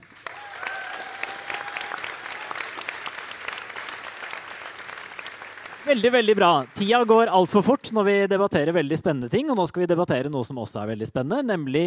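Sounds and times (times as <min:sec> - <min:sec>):
audience applause: 0:00.0 - 0:08.2
speech: 0:05.9 - 0:11.8.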